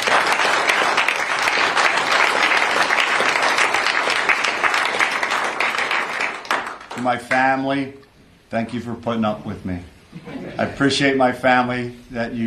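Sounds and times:
audience applause: 0.0 - 7.1
speech: 7.0 - 12.4
laughter: 10.1 - 11.0.

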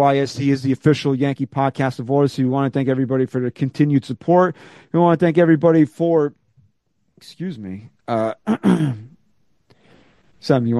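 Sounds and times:
speech: 0.0 - 6.4, 7.2 - 9.1, 10.4 - 10.7
person clearing throat: 8.3 - 9.2.

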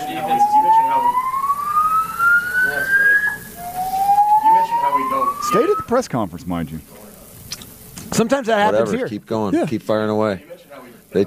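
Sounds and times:
alarm sounding during a press conference: 0.0 - 6.1
speech: 5.9 - 7.0, 8.2 - 10.5.

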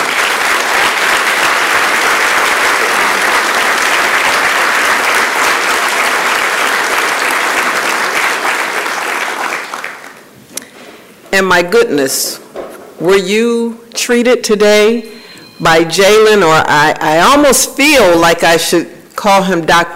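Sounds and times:
large crowd applauding: 0.0 - 10.3
speech: 11.4 - 12.4, 13.0 - 19.9.

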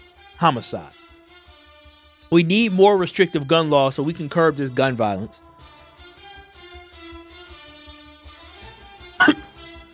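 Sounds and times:
speech: 0.4 - 1.0, 2.3 - 5.5, 9.2 - 9.4
cough into the microphone: 9.2 - 9.5.

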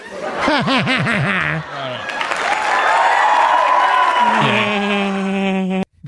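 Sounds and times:
laughter: 0.0 - 2.9, 4.2 - 5.9
applause with cheering sound effect: 2.1 - 5.1.

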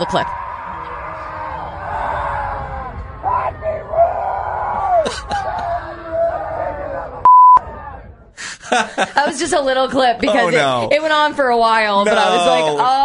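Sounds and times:
speech: 0.0 - 0.4, 5.1 - 6.2, 8.7 - 13.0
festival campers screaming at cancellation news: 0.0 - 8.3
laughter: 4.8 - 7.0, 8.4 - 10.7
censor bleep: 7.2 - 7.6.

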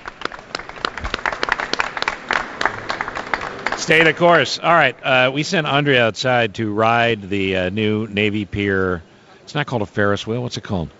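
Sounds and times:
audience applause: 0.0 - 6.0
speech: 3.9 - 10.9.

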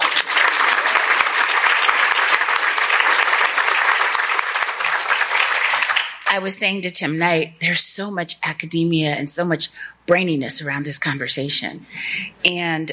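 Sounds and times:
crowd applause: 0.0 - 6.3
speech: 6.3 - 12.9.

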